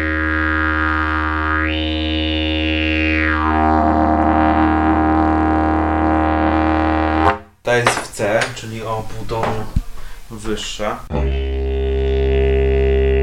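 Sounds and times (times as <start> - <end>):
didgeridoo drone: 0.0 - 7.4, 11.1 - 13.2
speech: 8.2 - 11.3.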